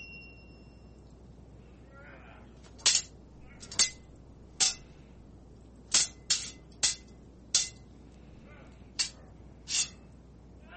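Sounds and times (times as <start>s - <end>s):
sword ratcheting sound effect: 2.6s - 4.8s, 5.9s - 7.8s, 9.0s - 10.0s.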